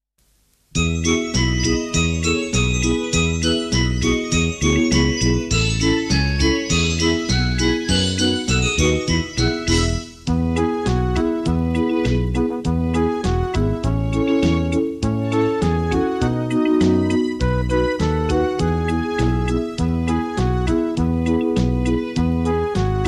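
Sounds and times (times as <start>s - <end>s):
Christmas song: 0.7s - 23.0s.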